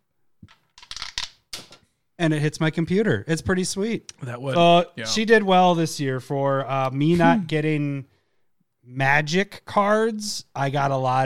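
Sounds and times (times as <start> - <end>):
die dropping through dice roller: 0.8 - 1.4
speech: 2.2 - 8.1, 8.8 - 11.2.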